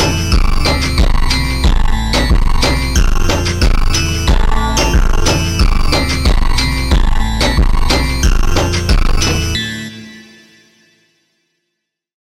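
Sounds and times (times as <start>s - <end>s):
slowed funk music: 0.0s - 9.6s.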